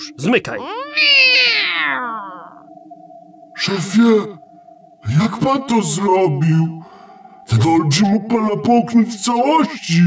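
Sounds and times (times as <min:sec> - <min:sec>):
speech: 0:00.1 - 0:02.4, 0:03.6 - 0:04.4, 0:05.0 - 0:06.9, 0:07.5 - 0:10.0
cat meowing: 0:00.6 - 0:02.6.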